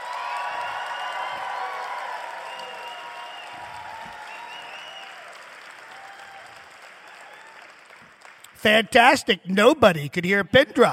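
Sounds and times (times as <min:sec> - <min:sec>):
audience applause: 0:00.0 - 0:08.7
speech: 0:08.6 - 0:10.9.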